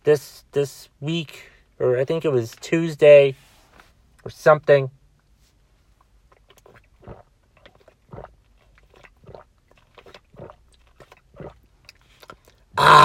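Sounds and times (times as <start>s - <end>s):
speech: 0.1s - 3.5s, 4.2s - 5.0s
person drinking water in gulps: 6.3s - 13.0s.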